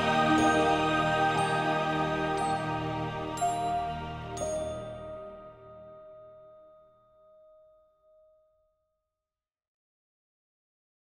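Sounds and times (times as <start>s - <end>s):
epic orchestral cover: 0.0s - 5.7s.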